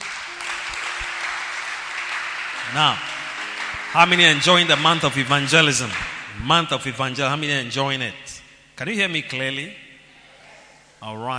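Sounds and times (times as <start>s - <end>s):
audience applause: 0.0s - 6.8s
speech: 2.7s - 3.2s, 3.9s - 9.8s, 11.0s - 11.3s.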